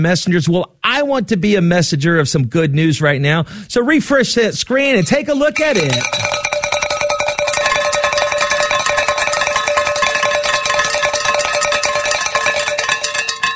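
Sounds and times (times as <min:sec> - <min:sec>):
speech: 0:00.0 - 0:06.4
bright metallic bells ringing: 0:05.6 - 0:13.5.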